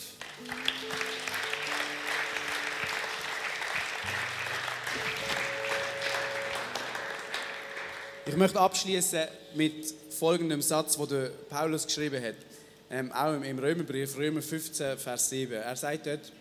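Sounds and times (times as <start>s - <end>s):
audience applause: 0.0s - 8.3s
speech: 8.3s - 16.3s.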